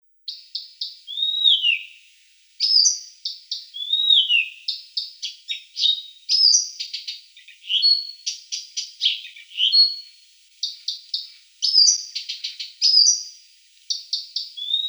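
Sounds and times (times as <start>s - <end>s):
Blyth's reed warbler Acrocephalus dumetorum singing a hurried medley of clicks, chirps and whistles: 0.3s - 2.0s, 2.6s - 14.8s.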